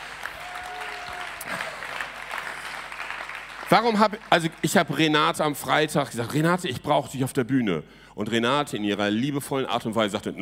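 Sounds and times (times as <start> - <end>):
audience applause, standing ovation: 0.0 - 5.0
speech: 3.7 - 10.4.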